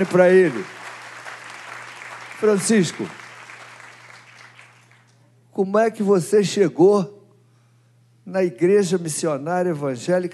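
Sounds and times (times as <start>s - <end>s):
speech: 0.0s - 0.8s, 2.4s - 3.2s, 5.6s - 7.2s, 8.2s - 10.3s
round of applause: 0.0s - 5.2s.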